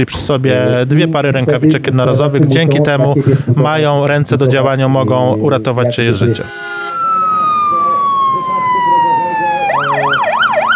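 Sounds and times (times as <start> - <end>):
speech: 0.0 - 6.8
laughter: 1.2 - 6.4
evacuation alarm signal: 5.4 - 10.7.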